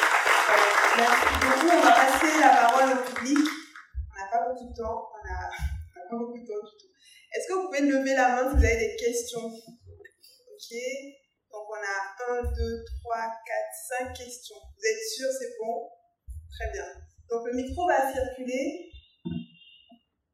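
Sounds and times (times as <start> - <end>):
audience applause: 0.0 - 3.8
people speaking: 0.4 - 6.7, 7.3 - 9.7, 10.6 - 15.8, 16.6 - 19.4.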